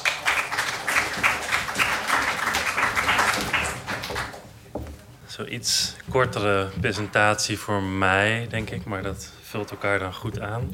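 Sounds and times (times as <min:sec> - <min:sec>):
audience applause: 0:00.0 - 0:04.5
speech: 0:05.4 - 0:10.7.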